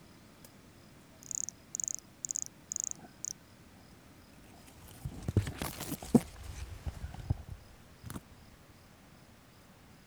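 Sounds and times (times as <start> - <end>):
pumpkin toadlet calling: 1.2 - 3.4
rustling and thumping: 4.6 - 8.4.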